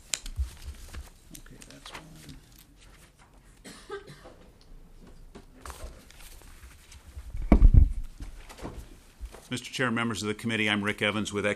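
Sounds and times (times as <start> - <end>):
paper handouts being passed around: 0.0 - 3.6, 5.6 - 9.6
low thump: 7.4 - 8.8
speech: 9.5 - 11.5.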